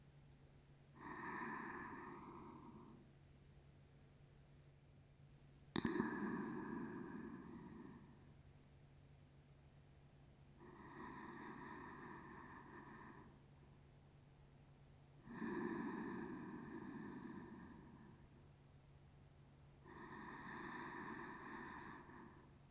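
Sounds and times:
sleep breathing on the left side: 0:01.0 - 0:03.0, 0:05.8 - 0:08.3, 0:10.6 - 0:13.5, 0:15.2 - 0:18.3, 0:19.8 - 0:22.6.

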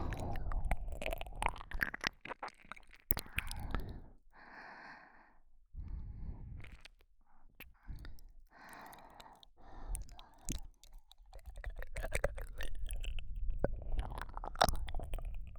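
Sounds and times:
ear licking in the left ear: 0:00.0 - 0:03.9, 0:07.6 - 0:15.5.

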